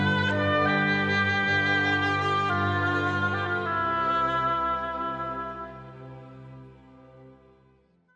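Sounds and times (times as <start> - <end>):
oboe: 0.0 - 7.1
string orchestra: 0.0 - 8.1.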